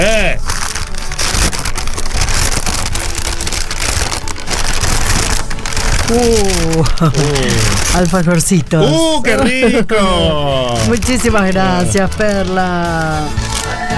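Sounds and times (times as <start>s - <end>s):
wrapping paper with a yellow bow torn open and crumpled: 0.0s - 13.9s
laughter: 6.1s - 13.9s
speech: 6.1s - 13.9s.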